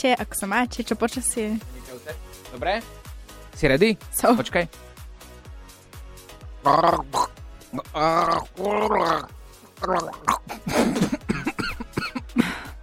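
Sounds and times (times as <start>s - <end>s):
speech: 0.0s - 3.0s, 3.6s - 4.8s, 6.6s - 11.2s
harsh rasping coughs: 10.0s - 12.8s.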